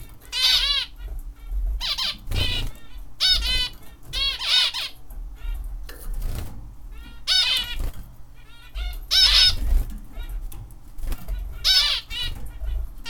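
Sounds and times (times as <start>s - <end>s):
zebra finch buzzy nasal call bursts: 0.0s - 13.0s.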